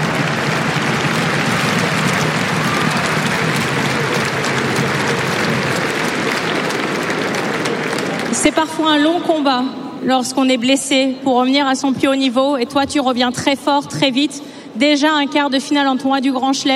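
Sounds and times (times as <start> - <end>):
audience applause: 0.0 - 9.0
speech: 8.5 - 16.7.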